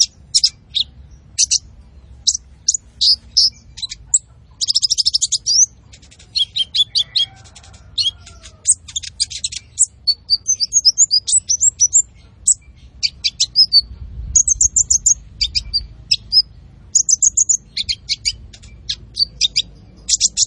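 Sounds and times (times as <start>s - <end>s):
olive-backed sunbird singing: 0.0s - 20.4s.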